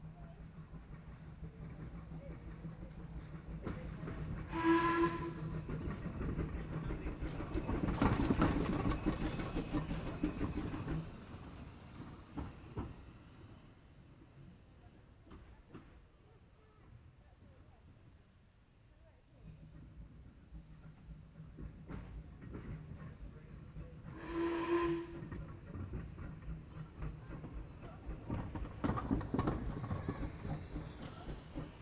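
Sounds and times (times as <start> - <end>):
steam train passing by: 0.0 - 31.8.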